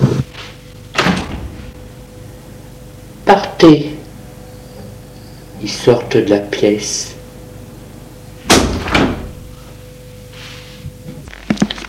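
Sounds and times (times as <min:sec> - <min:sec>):
door opening: 0:00.9 - 0:01.8, 0:08.4 - 0:09.5
speech: 0:03.3 - 0:03.9, 0:05.6 - 0:07.2.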